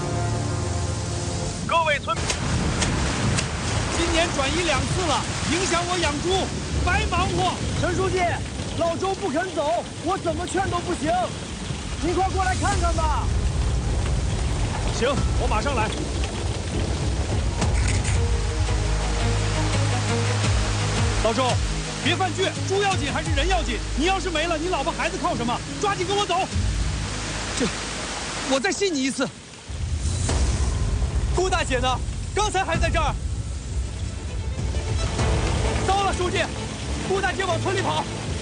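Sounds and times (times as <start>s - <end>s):
heavy rain pouring down: 0.0s - 38.3s
speech: 2.0s - 2.3s, 4.2s - 13.4s, 15.0s - 16.2s, 21.2s - 26.7s, 27.6s - 27.8s, 28.5s - 29.4s, 31.4s - 33.2s, 36.2s - 38.3s.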